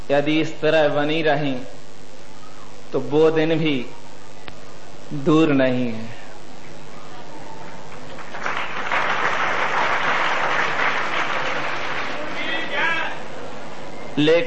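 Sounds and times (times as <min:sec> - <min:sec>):
speech: 0:00.1 - 0:01.8, 0:02.9 - 0:04.0, 0:05.1 - 0:06.2, 0:14.2 - 0:14.4
audience clapping: 0:07.6 - 0:12.8.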